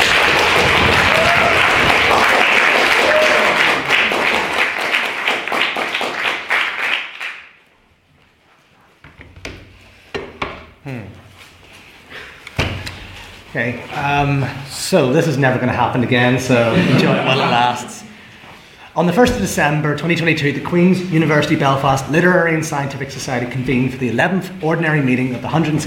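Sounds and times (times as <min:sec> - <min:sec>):
audience applause: 0:00.0 - 0:07.5
speech: 0:14.2 - 0:18.0, 0:19.0 - 0:25.8
laughter: 0:16.5 - 0:18.1.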